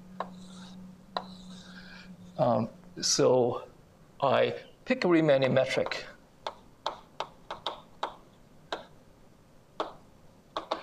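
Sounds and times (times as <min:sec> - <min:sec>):
steady low hum: 0:00.0 - 0:10.8
chalk tapping on a board while drawing a picture by hand: 0:00.2 - 0:01.6, 0:05.8 - 0:08.9, 0:09.8 - 0:10.0, 0:10.6 - 0:10.8
faint scraping stroke of drawing a picture by hand: 0:00.2 - 0:02.7
speech: 0:02.4 - 0:06.1.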